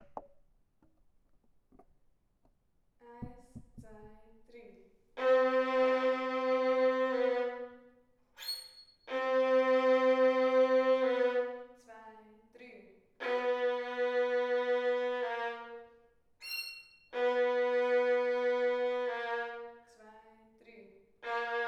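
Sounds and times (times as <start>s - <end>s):
violin: 5.2s - 11.8s, 13.2s - 20.4s, 21.2s - 21.6s.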